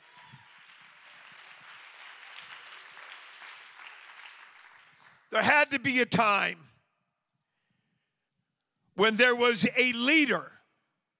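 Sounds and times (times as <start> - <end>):
audience clapping hands: 0.0 - 5.6
speech: 5.3 - 6.6, 9.0 - 10.5.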